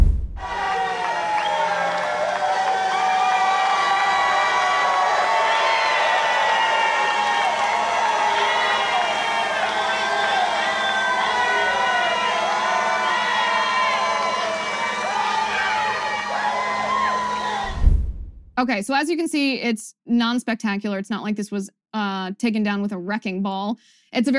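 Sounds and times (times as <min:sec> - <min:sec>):
crowd cheering at statue removal: 0:00.4 - 0:17.9
speech: 0:18.6 - 0:24.3.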